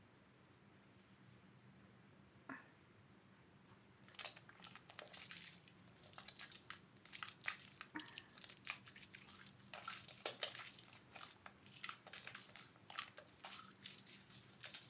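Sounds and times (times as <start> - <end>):
bare hands lathering and massaging the body: 4.1 - 14.8
water drips: 4.1 - 14.8.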